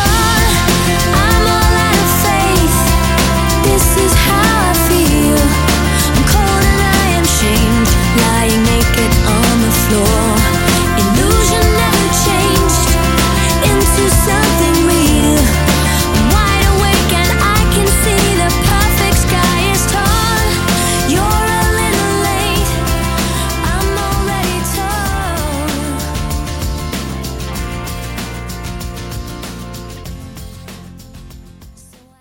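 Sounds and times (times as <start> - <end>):
90s pop drum beat: 0.0 - 32.1.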